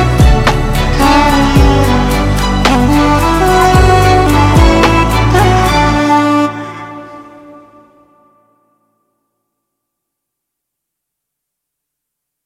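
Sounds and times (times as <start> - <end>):
lofi ambient music: 0.0 - 9.0.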